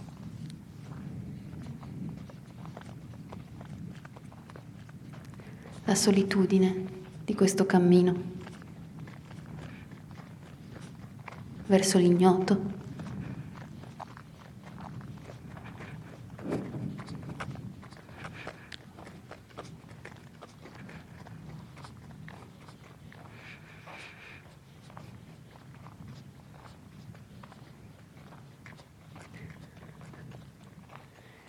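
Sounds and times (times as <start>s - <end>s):
footsteps walking: 0.0s - 31.4s
speech: 5.9s - 8.4s, 11.7s - 12.8s.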